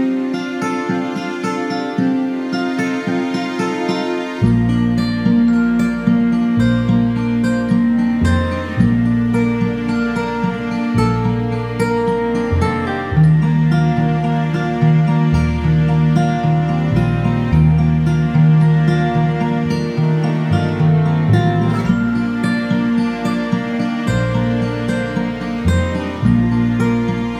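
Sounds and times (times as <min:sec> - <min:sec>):
orchestral guitar: 0:00.0 - 0:27.3.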